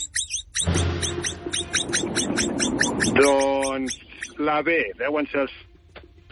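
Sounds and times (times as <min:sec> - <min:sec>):
capybara vocalizing: 0:00.0 - 0:04.6
speech: 0:03.2 - 0:05.7.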